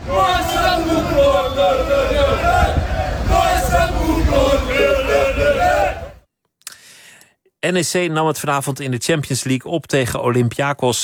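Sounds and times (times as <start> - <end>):
stadium crowd roaring and chanting: 0.0 - 6.2
speech: 7.6 - 11.0.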